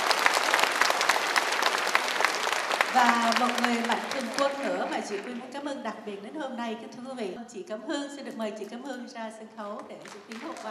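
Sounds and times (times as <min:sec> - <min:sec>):
audience applause at a Vietnamese community event in Austin, Texas: 0:00.0 - 0:05.5, 0:10.0 - 0:10.7
speech: 0:02.9 - 0:10.7.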